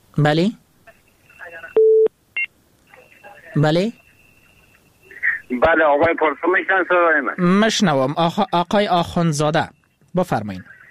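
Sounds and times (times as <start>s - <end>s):
speech: 0.2s - 0.6s, 3.6s - 4.0s, 5.5s - 10.7s
telephone tones as a caller is connected to a live call-in program: 1.6s - 5.5s.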